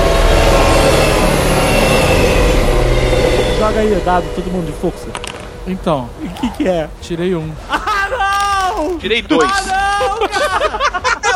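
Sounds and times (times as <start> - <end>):
train passing: 0.0 - 8.3
speech: 3.8 - 7.8, 8.8 - 11.2
laughter: 6.2 - 11.3.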